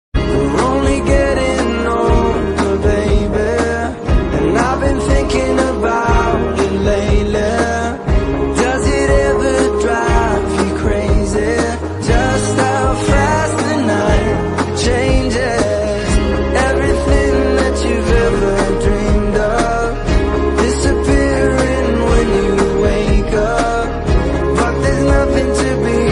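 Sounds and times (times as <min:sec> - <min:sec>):
romantic English ringtone music: 0:00.2 - 0:26.1.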